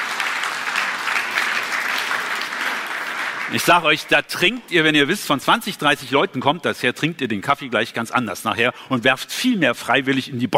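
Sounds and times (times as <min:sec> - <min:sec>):
audience applause: 0:00.0 - 0:04.6
speech: 0:03.5 - 0:10.5.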